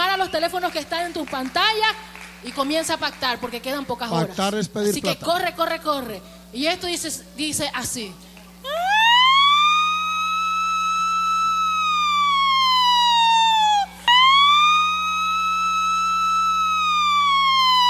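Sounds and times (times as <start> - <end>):
speech: 0.2 - 8.8
loud electronic siren wailing: 8.7 - 17.8.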